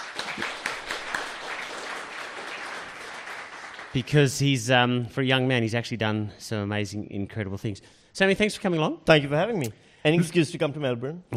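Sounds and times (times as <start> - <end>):
audience applause: 0.0 - 4.1
speech: 3.9 - 11.3.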